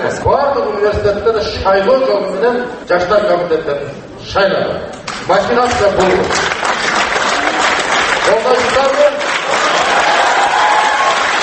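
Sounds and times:
speech: 0.0 - 6.5
many students applauding loudly at a forum: 5.1 - 11.4.

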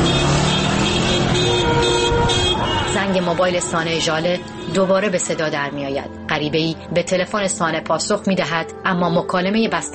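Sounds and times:
car horns honking: 0.0 - 5.1
speech: 3.1 - 9.9.

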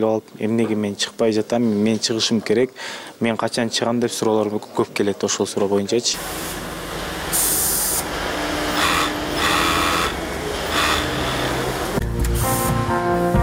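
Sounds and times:
speech: 0.0 - 6.7
sewing workshop machines whirring in Bishkek: 6.2 - 12.0
sharp high bursts: 7.3 - 12.8.

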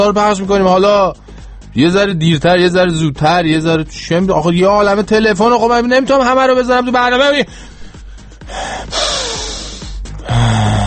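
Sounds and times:
speech: 0.0 - 1.2, 1.8 - 7.8
deep breath: 1.2 - 1.7, 7.5 - 10.8.

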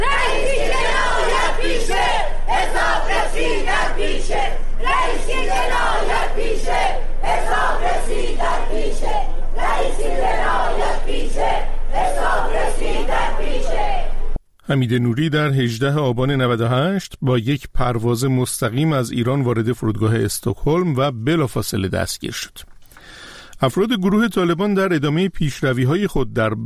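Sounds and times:
protest crowd chanting slogans outside a courthouse: 0.0 - 14.4
speech: 14.7 - 22.7, 23.6 - 26.6.

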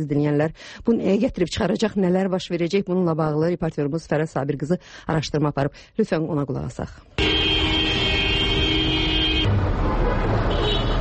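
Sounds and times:
speech: 0.0 - 7.4
traffic engine and road rumble in Baku: 7.1 - 10.9
car horn in queued Baku street traffic: 7.2 - 9.6, 10.2 - 10.9.

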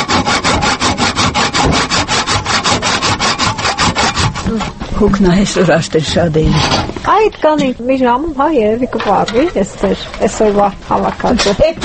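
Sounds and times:
hand sawing through wood branches for winter firewood: 0.0 - 5.7, 6.5 - 6.9, 9.0 - 11.8
speech: 5.0 - 11.8.

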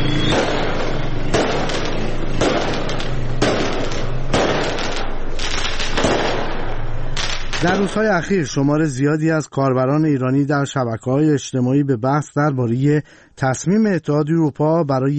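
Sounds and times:
fireworks going off in the street: 0.0 - 8.5
speech: 7.6 - 15.1.

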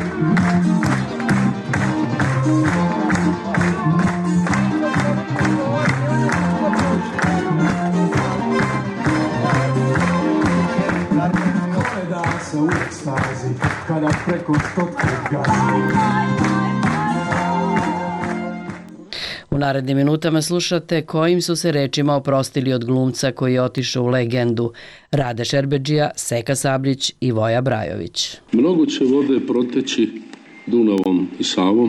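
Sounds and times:
standing ovation at the commemoration for actor Dragan Nikolić: 0.0 - 18.9
speech: 19.6 - 31.8.

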